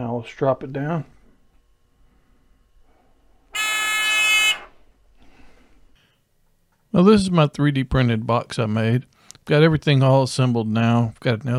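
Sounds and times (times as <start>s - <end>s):
speech: 0.2s - 1.2s, 6.9s - 11.5s
electric buzzer sounding: 3.5s - 4.8s.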